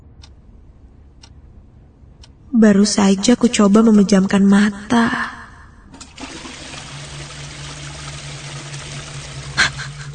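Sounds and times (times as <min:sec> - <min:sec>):
speech: 0:02.6 - 0:05.4
toilet being flushed: 0:05.9 - 0:10.1.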